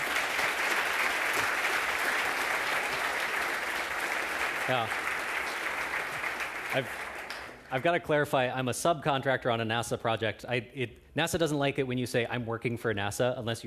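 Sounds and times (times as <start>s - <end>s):
warm applause: 0.0s - 7.9s
speech: 4.7s - 5.1s, 6.7s - 7.0s, 7.7s - 13.6s.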